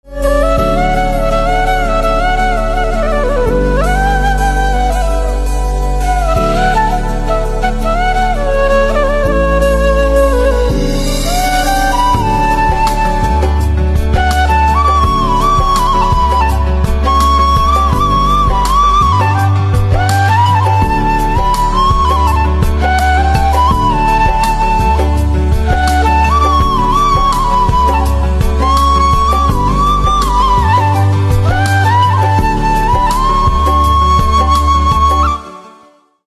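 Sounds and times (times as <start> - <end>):
flute instrumental ringtone: 0.2 - 35.6.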